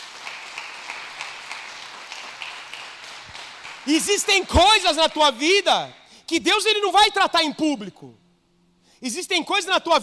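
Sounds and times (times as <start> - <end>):
audience applauding: 0.0 - 5.0
speech: 3.8 - 8.2, 9.0 - 10.0.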